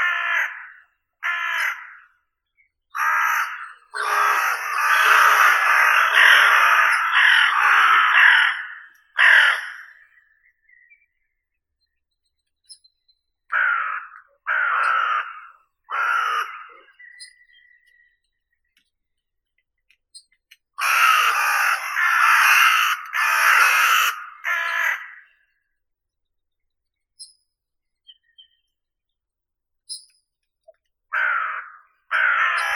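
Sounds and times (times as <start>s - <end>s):
Carrion crow Corvus corone calling: 0.0s - 11.0s, 13.5s - 18.2s, 20.8s - 25.6s, 31.1s - 32.7s.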